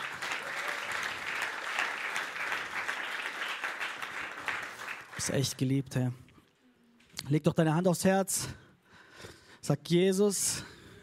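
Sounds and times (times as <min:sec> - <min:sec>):
audience applause: 0:00.0 - 0:05.4
speech: 0:05.2 - 0:06.2, 0:07.3 - 0:08.6, 0:09.2 - 0:10.7.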